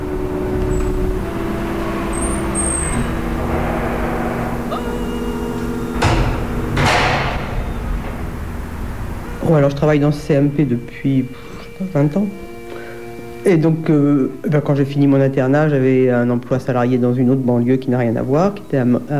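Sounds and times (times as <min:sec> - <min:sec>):
building entrance door being pushed open: 0:00.2 - 0:11.0
speech: 0:09.5 - 0:12.5, 0:13.4 - 0:19.1.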